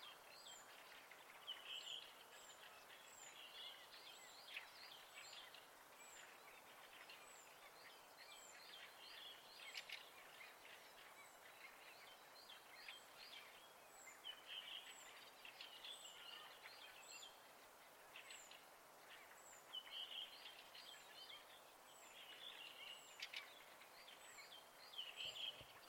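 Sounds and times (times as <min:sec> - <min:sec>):
birds singing at night in spring: 0:00.0 - 0:25.8.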